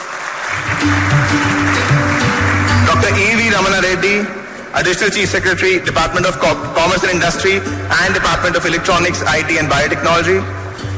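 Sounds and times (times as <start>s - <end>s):
crowd applauding: 0.0s - 4.1s
speech: 0.8s - 1.8s, 3.0s - 10.6s.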